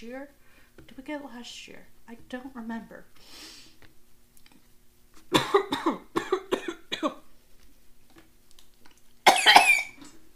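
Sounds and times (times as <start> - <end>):
speech: 0.0 - 3.6, 5.3 - 6.1
harsh rasping hacking coughs: 5.3 - 7.2, 9.3 - 10.1.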